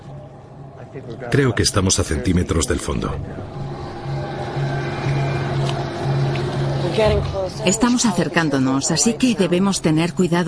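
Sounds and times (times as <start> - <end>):
speech: 0.8 - 3.9, 6.9 - 10.4
boat motor running in shallow water: 3.2 - 9.5.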